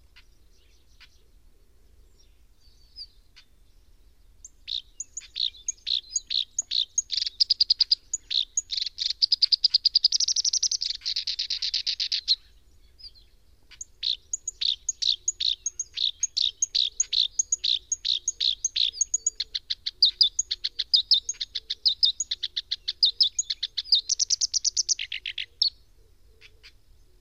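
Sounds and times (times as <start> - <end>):
koyosikiri bird calling: 4.4 - 27.2.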